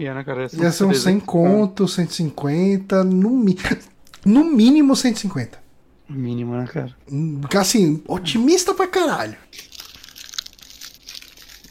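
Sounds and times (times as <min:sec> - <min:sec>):
speech: 0:00.0 - 0:09.7
crinkling: 0:09.5 - 0:11.6
person eating a chocolate truffle: 0:09.5 - 0:11.6.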